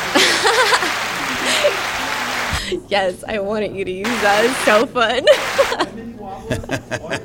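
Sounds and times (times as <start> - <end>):
laughter: 0.0 - 2.8, 4.1 - 7.2
people cheering: 0.0 - 2.8, 4.1 - 5.8
speech: 2.9 - 7.2.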